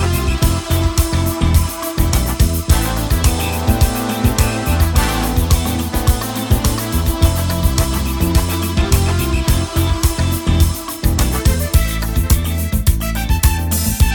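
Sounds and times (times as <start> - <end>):
bossa nova with guitar: 0.0 - 14.1.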